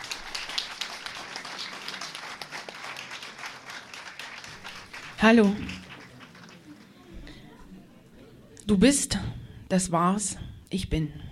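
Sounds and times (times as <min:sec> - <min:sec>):
crowd applauding: 0:00.0 - 0:07.4
speech: 0:05.2 - 0:05.8, 0:08.7 - 0:11.3.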